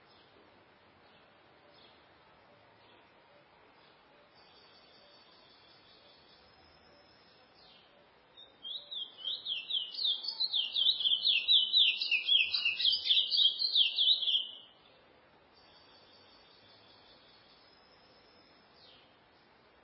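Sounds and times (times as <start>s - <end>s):
chestnut-bellied seed finch singing: 8.6s - 14.6s.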